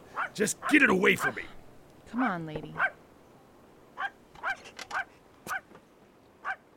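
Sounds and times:
dog barking: 0.2s - 1.4s, 2.2s - 3.0s, 4.0s - 5.7s, 6.4s - 6.6s
speech: 0.4s - 2.9s.

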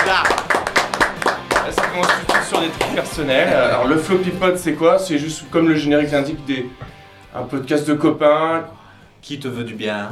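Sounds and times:
small group clapping: 0.0s - 3.3s
speech: 0.1s - 0.4s, 1.7s - 10.0s.

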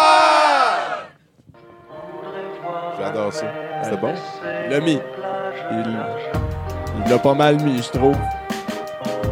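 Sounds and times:
crowd shouting one word together: 0.0s - 1.1s
speech: 3.0s - 8.4s.

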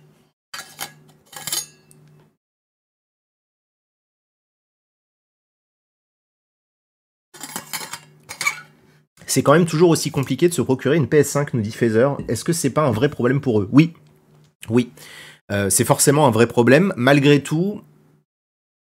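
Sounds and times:
glassware and dishes clinking and rattling: 0.6s - 2.0s, 7.4s - 8.7s
speech: 9.3s - 14.0s, 14.6s - 17.9s.

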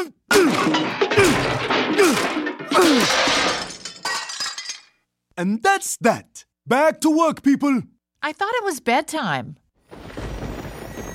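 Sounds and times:
speech: 0.0s - 1.0s, 5.4s - 9.6s
hammer smashing a PCD: 0.3s - 4.2s.

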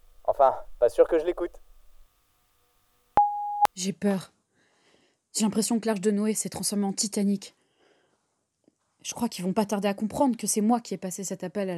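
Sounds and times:
speech: 0.4s - 1.7s, 3.8s - 4.4s, 5.3s - 7.6s, 9.0s - 11.7s
electronic voicemail beep: 3.2s - 3.7s.

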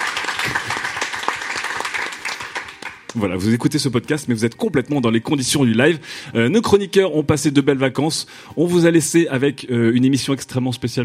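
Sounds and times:
audience applause: 0.0s - 3.2s
speech: 3.1s - 11.0s.

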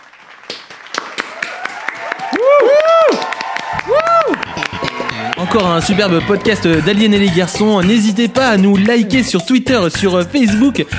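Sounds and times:
applause: 0.0s - 7.3s
speech: 5.5s - 10.9s.

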